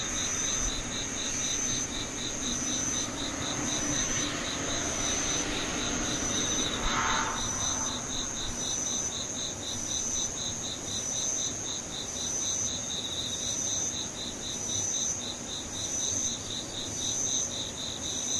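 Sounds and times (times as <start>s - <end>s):
insect trilling in short bursts: 0.0s - 10.5s
insect calling in quick pulsing beats: 0.0s - 18.3s
low rumble: 3.0s - 9.3s.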